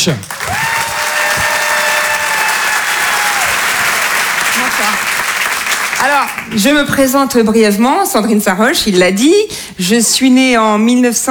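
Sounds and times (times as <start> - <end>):
speech: 0.0 - 0.4, 4.8 - 5.1, 6.0 - 11.2
audience applause: 0.2 - 6.9.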